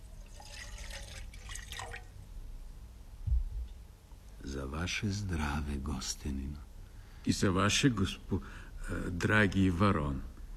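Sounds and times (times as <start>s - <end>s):
wine pouring at a banquet table: 0.0s - 2.2s
soft low knock: 3.2s - 3.8s
speech: 4.6s - 10.3s.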